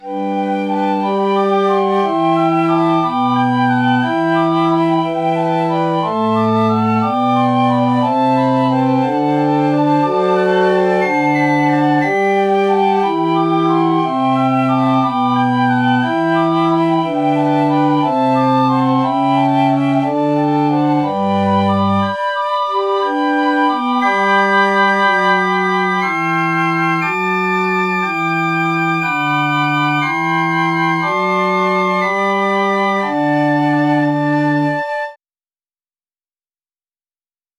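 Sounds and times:
piccolo: 0.0 - 35.2.

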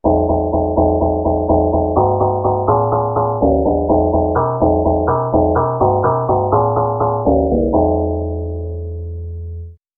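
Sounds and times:
agogo: 0.0 - 8.6
bass: 0.0 - 9.8.

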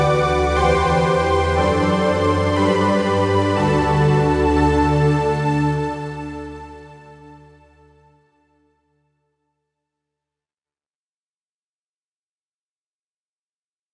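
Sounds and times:
halo synth pad: 0.0 - 7.8.

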